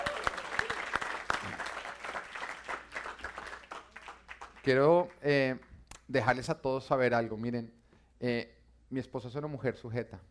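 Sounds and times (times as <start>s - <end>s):
audience applauding: 0.0s - 4.8s
speech: 4.6s - 10.2s.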